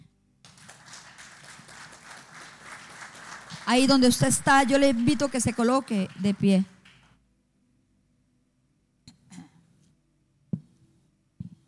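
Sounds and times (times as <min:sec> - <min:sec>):
audience applauding: 0:00.4 - 0:07.2
speech: 0:03.7 - 0:06.7.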